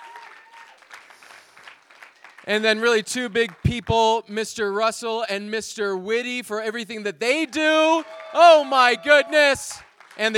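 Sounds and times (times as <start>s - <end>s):
audience applause: 0.0s - 2.5s, 7.8s - 10.3s
speech: 2.4s - 10.3s.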